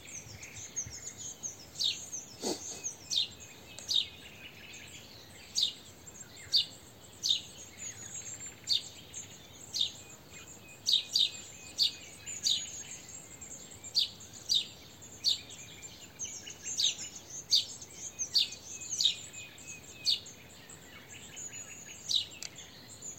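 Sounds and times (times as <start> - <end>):
house sparrow chirps: 0.0 - 23.1
steady high hiss: 2.3 - 3.0.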